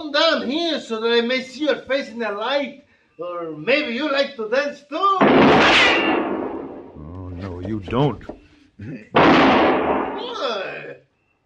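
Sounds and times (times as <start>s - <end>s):
speech: 0.1s - 6.2s, 7.7s - 11.0s
gunshot shooting a gun out of a man's hand: 5.2s - 7.0s, 9.2s - 10.3s.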